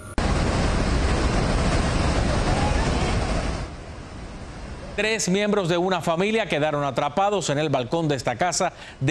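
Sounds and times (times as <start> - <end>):
rushing floodwater carrying mud and debris: 0.2 - 6.7
speech: 5.0 - 9.0.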